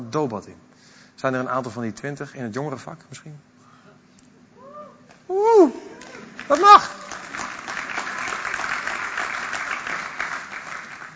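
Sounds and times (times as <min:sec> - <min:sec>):
speech: 0:00.1 - 0:03.5, 0:05.4 - 0:05.9, 0:06.5 - 0:07.0
audience applause: 0:06.0 - 0:11.1.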